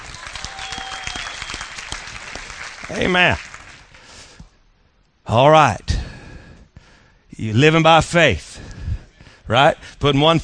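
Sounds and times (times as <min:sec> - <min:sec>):
church congregation applauding to welcome guests: 0:00.0 - 0:04.2
speech: 0:02.9 - 0:03.5, 0:05.3 - 0:06.0, 0:07.4 - 0:08.6, 0:09.5 - 0:10.4.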